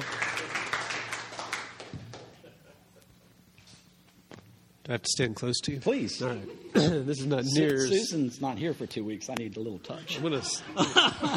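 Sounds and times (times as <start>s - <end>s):
audience clapping: 0.0s - 2.5s
laughter: 2.1s - 3.2s, 9.9s - 11.3s
speech: 4.9s - 11.3s.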